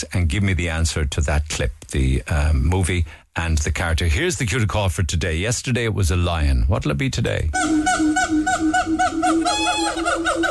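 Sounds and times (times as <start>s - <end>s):
speech: 0.0s - 8.4s
monkey or chimpanzee call: 7.6s - 10.4s.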